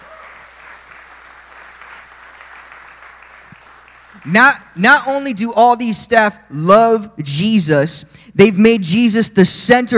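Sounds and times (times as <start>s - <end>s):
audience clapping: 0.0s - 4.4s
speech: 4.1s - 9.9s.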